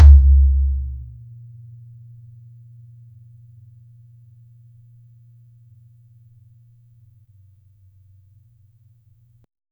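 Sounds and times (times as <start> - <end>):
mid tom drum: 0.0 - 1.2.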